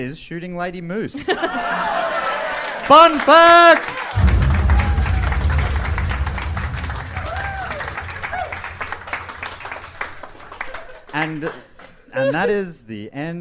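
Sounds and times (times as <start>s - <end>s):
speech: 0.0s - 2.1s, 2.9s - 4.1s, 11.2s - 13.3s
laughter: 1.2s - 2.6s
round of applause from a group: 1.6s - 12.0s
whistles and cheers: 4.1s - 10.1s.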